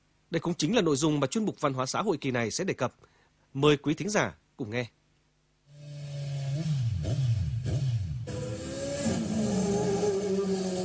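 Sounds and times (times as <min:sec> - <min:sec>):
speech: 0:00.3 - 0:05.0
motorbikes revving: 0:05.8 - 0:10.8.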